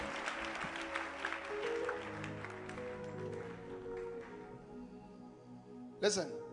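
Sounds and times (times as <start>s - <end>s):
audience clapping hands: 0.0s - 4.6s
speech: 6.0s - 6.4s.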